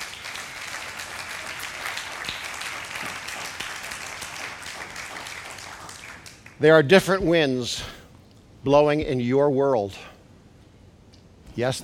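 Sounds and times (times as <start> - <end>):
audience clapping: 0.0 - 6.8
speech: 6.6 - 8.0, 8.6 - 10.1, 11.6 - 11.8.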